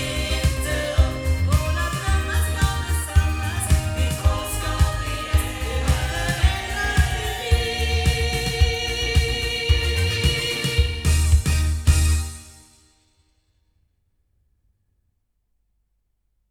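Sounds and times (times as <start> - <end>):
loudspeakers: 0.0 - 12.2.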